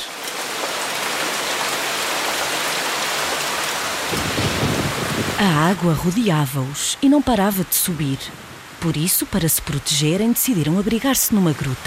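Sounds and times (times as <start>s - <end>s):
heavy rain: 0.0s - 11.8s
thunder: 4.1s - 5.4s
speech: 5.4s - 11.8s.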